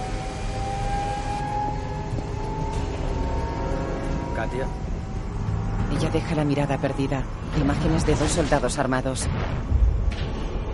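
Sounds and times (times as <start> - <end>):
thin sustained whining tone: 0.0 - 7.4
turbine, hoists and overhead cranes droning in a factory hall: 0.0 - 10.7
speech: 4.4 - 4.9, 5.9 - 9.8.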